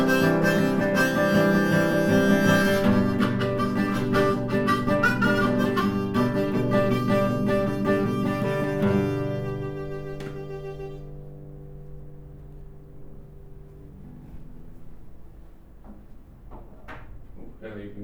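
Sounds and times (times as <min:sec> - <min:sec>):
harmonica: 0:00.0 - 0:11.6
guitar: 0:00.0 - 0:17.4.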